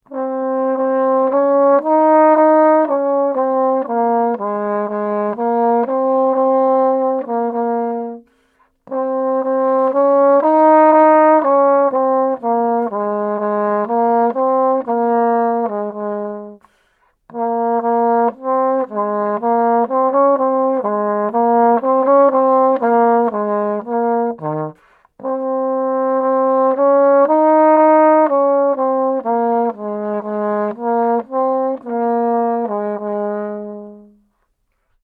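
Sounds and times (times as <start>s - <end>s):
horn: 0.0s - 35.0s.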